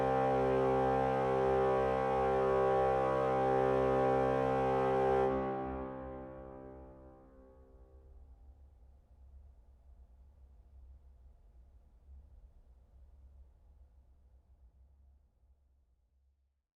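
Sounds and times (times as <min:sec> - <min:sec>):
organ bass crumhorn stop played by organist: 0:00.0 - 0:07.4.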